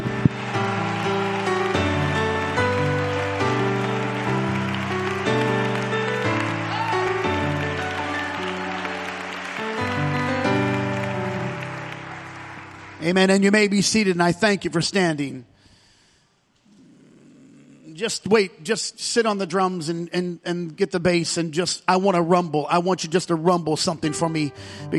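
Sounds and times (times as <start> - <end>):
audience clapping and shouting: 0.0 - 13.8
sustained keyboard chords: 0.0 - 13.8
speech: 13.1 - 15.5, 18.0 - 24.9.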